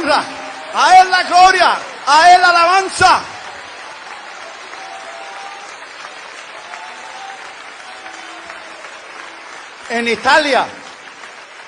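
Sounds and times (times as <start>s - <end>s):
audience applause: 0.0s - 11.6s
speech: 0.1s - 3.3s, 9.9s - 10.8s.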